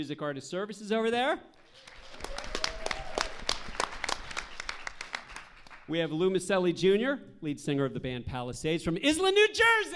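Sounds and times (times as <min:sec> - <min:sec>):
speech: 0:00.0 - 0:01.9, 0:05.9 - 0:09.9
small audience clapping: 0:01.6 - 0:06.1.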